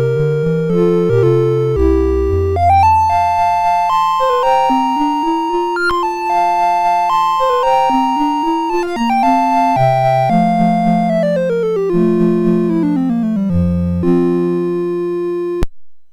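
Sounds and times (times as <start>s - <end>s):
sonatina in F major on MOS 6581 sound chip: 0.0s - 15.6s.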